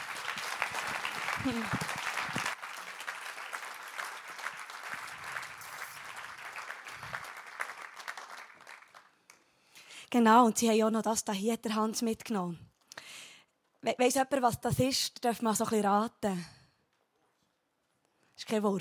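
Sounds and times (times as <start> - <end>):
audience applause: 0.0 - 9.1
speech: 1.4 - 1.9, 10.1 - 12.6, 13.8 - 16.6, 18.5 - 18.7.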